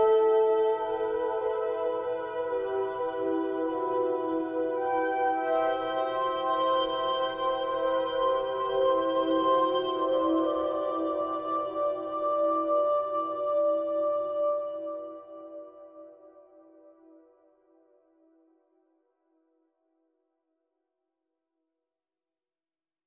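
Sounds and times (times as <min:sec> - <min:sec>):
soprano singing: 0:00.0 - 0:16.2
synthesizer: 0:00.0 - 0:18.2.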